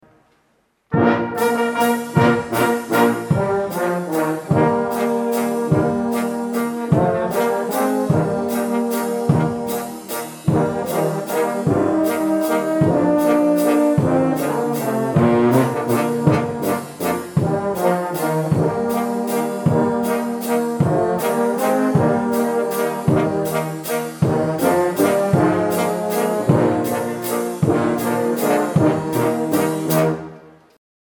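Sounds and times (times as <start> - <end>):
fanfare: 0.9 - 30.4.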